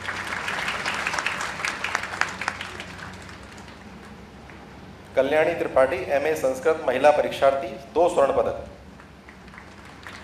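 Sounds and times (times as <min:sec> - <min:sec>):
audience applause: 0:00.0 - 0:04.1, 0:09.3 - 0:10.2
speech: 0:05.2 - 0:08.7.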